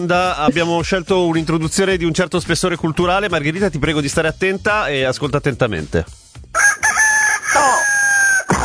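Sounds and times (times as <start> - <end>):
speech: 0.0 - 6.2
rooster crowing: 6.6 - 8.5.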